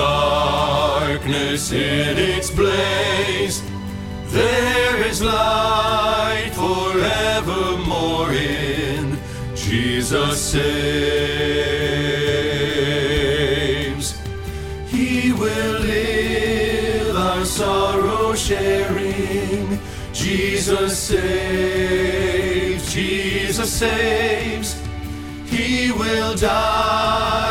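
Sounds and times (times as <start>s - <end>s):
bass choir rehearsal part: 0.0s - 27.5s.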